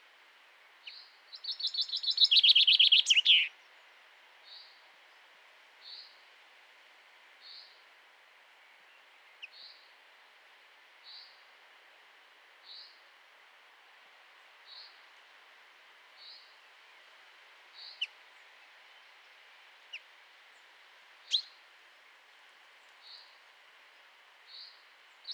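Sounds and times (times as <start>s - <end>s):
common chaffinch call: 2.2s - 3.5s.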